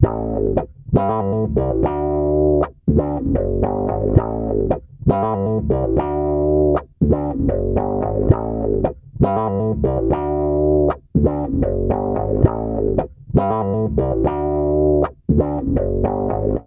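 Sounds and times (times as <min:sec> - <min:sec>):
bass guitar loops: 0:00.0 - 0:16.6.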